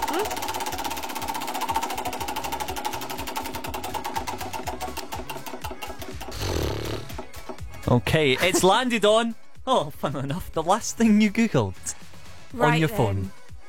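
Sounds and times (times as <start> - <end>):
prize wheel spinning with rattling clicks: 0.0 - 7.6
speech: 7.9 - 11.9, 12.5 - 13.4.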